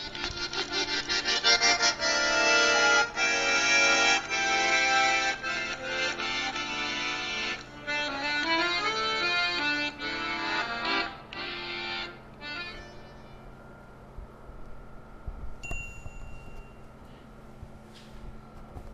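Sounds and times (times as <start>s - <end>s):
accordion: 0.0s - 13.4s.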